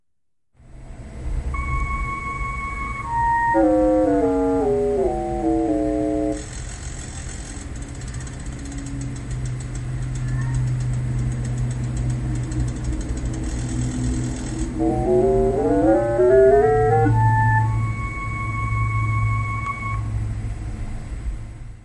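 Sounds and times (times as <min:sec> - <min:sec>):
steady low hum: 0:00.6 - 0:06.6, 0:11.3 - 0:21.1
flute-like tones from a light-to-sound device: 0:01.6 - 0:06.5, 0:14.8 - 0:20.1
low dense clicking buzz: 0:01.6 - 0:20.1.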